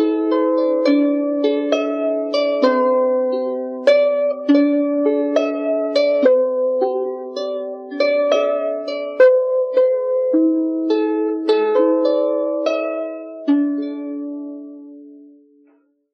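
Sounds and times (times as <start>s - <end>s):
harp improvisation: 0.0s - 15.8s.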